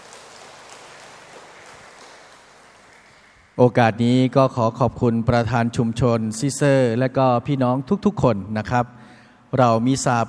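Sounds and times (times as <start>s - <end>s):
crowd applauding: 0.0s - 3.6s
speech: 3.6s - 10.2s.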